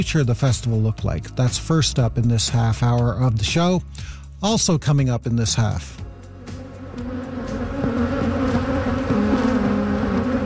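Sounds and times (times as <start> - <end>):
speech: 0.0 - 6.0
honeybees buzzing on the roof of the Avalon Mall: 6.0 - 10.4.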